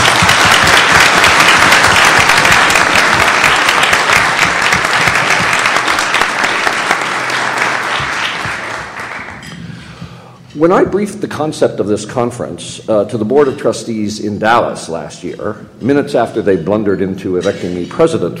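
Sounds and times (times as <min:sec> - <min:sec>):
crowd applauding: 0:00.0 - 0:09.5
speech: 0:10.6 - 0:18.3.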